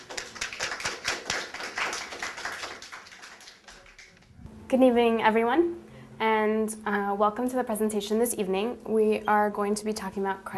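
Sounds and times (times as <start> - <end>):
audience applause welcoming a speaker at a presentation for entrepreneurs: 0.0 - 4.3
speech: 4.7 - 10.5.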